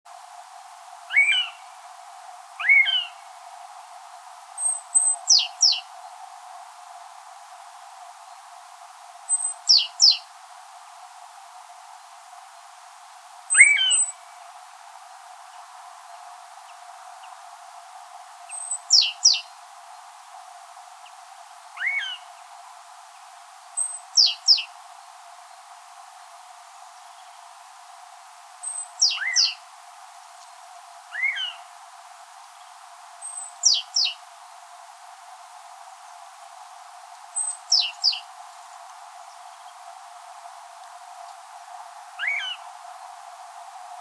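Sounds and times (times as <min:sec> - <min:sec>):
Garrulus glandarius: 0:01.1 - 0:01.6, 0:02.6 - 0:03.2, 0:04.6 - 0:05.9, 0:13.5 - 0:14.3, 0:18.5 - 0:19.5, 0:21.8 - 0:22.3, 0:28.6 - 0:29.6, 0:31.1 - 0:31.7, 0:33.2 - 0:34.2, 0:37.4 - 0:38.3, 0:42.2 - 0:42.6.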